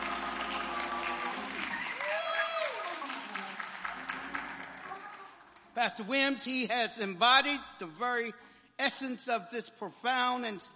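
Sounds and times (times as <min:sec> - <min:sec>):
audience applause: 0:00.0 - 0:05.6
speech: 0:05.8 - 0:10.7.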